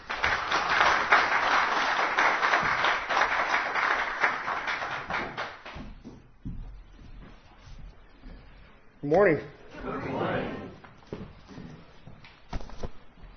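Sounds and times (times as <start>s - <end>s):
audience applauding a guest pastor at a Calvary Chapel church service: 0.0s - 5.8s
speech: 9.1s - 10.6s.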